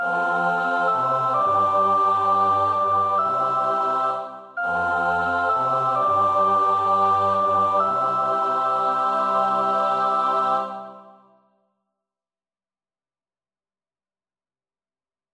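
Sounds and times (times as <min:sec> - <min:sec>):
first soprano voice singing a carol verse: 0:00.0 - 0:11.2.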